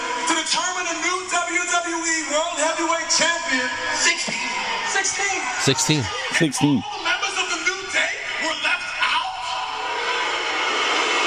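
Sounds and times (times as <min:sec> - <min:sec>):
arena crowd booing and jeering: 0:00.0 - 0:11.2
speech: 0:01.6 - 0:07.1
loud shouts from the arena crowd: 0:03.7 - 0:10.6.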